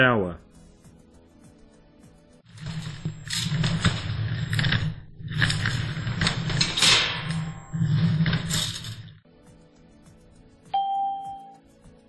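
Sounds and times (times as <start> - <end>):
furniture being moved: 2.5 - 9.2.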